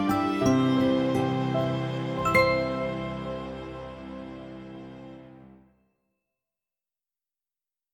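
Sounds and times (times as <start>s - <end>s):
instrumental music: 0.0s - 5.7s.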